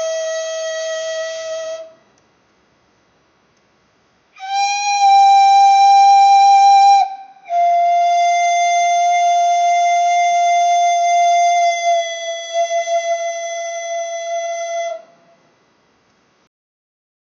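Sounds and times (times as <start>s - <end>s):
Maya temple flute playing: 0.0s - 2.0s, 4.4s - 15.4s.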